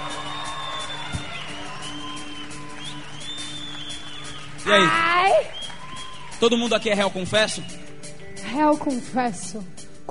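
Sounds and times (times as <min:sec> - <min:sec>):
crowd cheering and clapping: 0:00.0 - 0:07.7
shrill whistles: 0:00.0 - 0:07.9
speech: 0:04.7 - 0:05.6, 0:06.4 - 0:07.8, 0:08.5 - 0:10.1.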